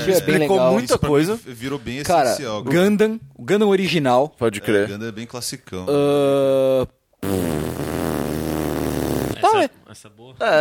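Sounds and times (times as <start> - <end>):
speech: 0.0 - 7.9, 9.5 - 10.5
woman farting: 7.2 - 9.5.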